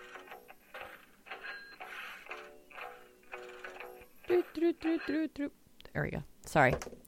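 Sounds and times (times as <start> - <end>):
mobile phone ringtone: 1.3 - 5.3
speech: 4.4 - 7.0.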